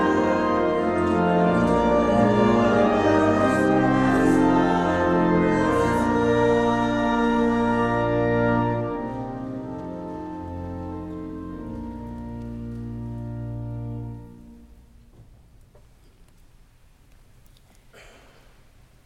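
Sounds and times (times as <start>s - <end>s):
hymn: 0.0s - 14.4s.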